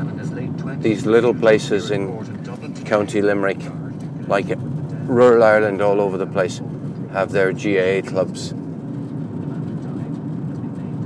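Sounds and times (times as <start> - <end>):
car driving along a rural road in County Limerick, Ireland: 0.0 - 11.0
speech: 0.7 - 8.6.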